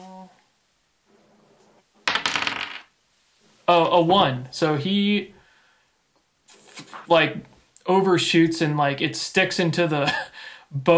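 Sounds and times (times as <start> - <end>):
dice clattering across a surface: 2.1 - 2.9
speech: 3.7 - 5.4, 7.1 - 10.9.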